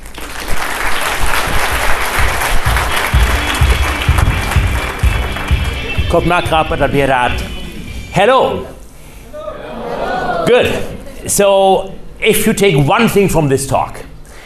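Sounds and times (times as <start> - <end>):
audience applause: 0.0 - 6.8
speech: 6.1 - 7.6, 8.2 - 8.8, 10.5 - 14.1.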